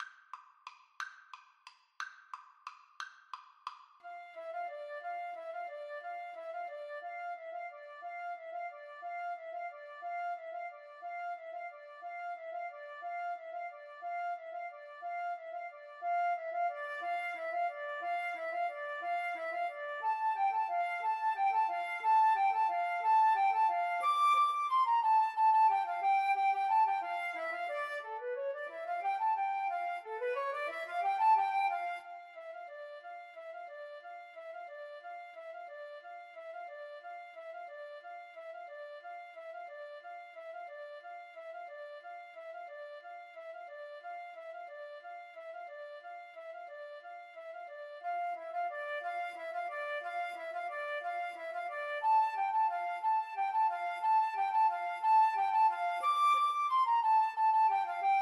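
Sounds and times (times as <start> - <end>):
flute duet: 4.0 - 58.2.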